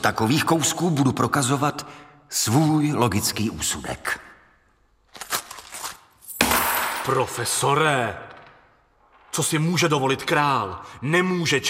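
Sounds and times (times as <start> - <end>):
speech: 0.0 - 4.3, 7.1 - 8.3, 9.4 - 11.6
coins falling and clinking from a dropped purse: 6.2 - 7.2.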